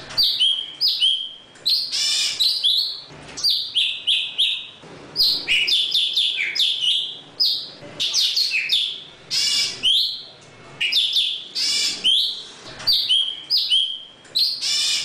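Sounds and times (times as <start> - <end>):
Java sparrow song of whistled notes: 0.2 - 10.2, 10.8 - 15.0.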